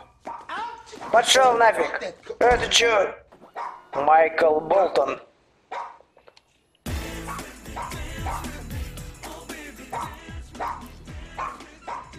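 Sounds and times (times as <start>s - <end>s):
dog barking: 0.0s - 2.0s, 3.5s - 4.0s, 5.7s - 6.1s, 7.2s - 8.5s, 9.9s - 12.1s
speech: 1.0s - 3.2s, 3.9s - 5.3s.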